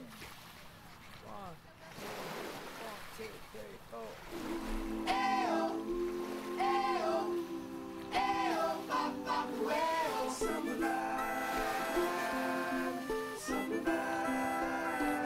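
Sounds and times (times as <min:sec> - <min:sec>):
ocean waves in a song: 0:00.0 - 0:15.2.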